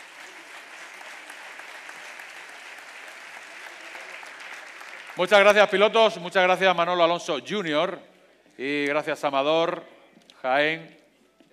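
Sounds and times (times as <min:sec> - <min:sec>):
crowd applauding Rally Crono drivers on the podium at an awards gala: 0:00.0 - 0:06.0
speech: 0:05.2 - 0:11.0.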